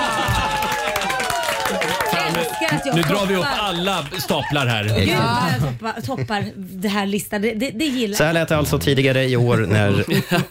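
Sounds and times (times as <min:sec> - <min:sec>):
small round of applause: 0:00.0 - 0:05.1
laughter: 0:00.0 - 0:06.7, 0:09.5 - 0:10.4
speech: 0:02.7 - 0:10.4.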